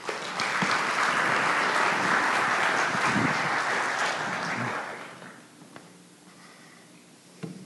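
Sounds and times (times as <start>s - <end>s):
audience applause: 0.0s - 5.4s.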